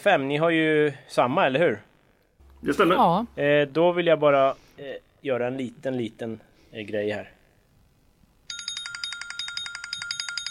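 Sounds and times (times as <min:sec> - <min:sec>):
speech: 0:00.0 - 0:01.9, 0:02.6 - 0:07.4
rusty-sounding bell ringing: 0:08.5 - 0:10.4.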